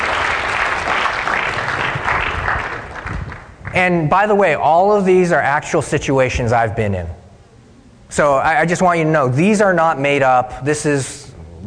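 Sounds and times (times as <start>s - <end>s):
round of applause: 0.0s - 3.8s
speech: 3.8s - 7.2s, 8.1s - 11.6s.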